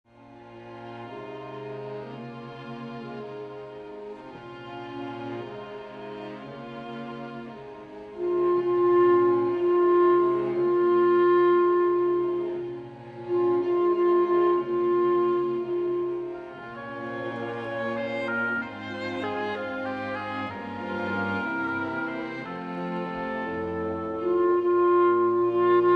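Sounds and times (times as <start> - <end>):
clarinet: 0.1 - 25.9.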